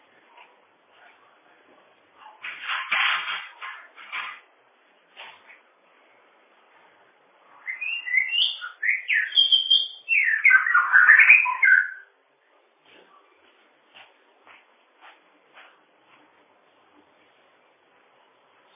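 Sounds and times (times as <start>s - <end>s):
bird whistling song: 7.6s - 12.1s.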